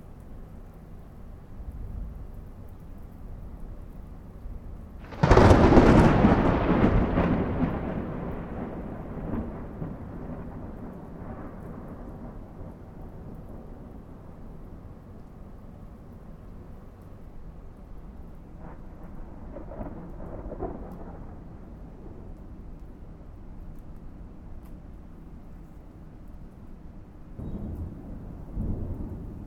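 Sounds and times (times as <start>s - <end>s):
thunderstorm rain: 0.0s - 29.4s
big thunder in a thunderstorm: 5.0s - 13.9s, 18.6s - 22.4s, 27.4s - 29.4s.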